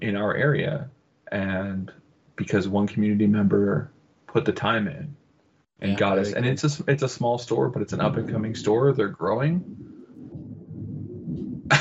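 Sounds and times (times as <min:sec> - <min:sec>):
speech: 0:00.0 - 0:05.2, 0:05.8 - 0:09.9
thunder: 0:08.0 - 0:11.7.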